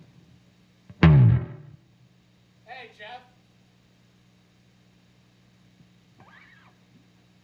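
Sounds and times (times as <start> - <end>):
bass slide: 1.0 - 1.8.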